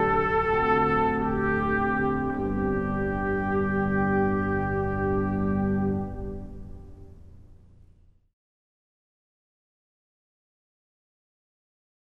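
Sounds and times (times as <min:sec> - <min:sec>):
trumpet playing a largo in G: 0:00.0 - 0:07.0.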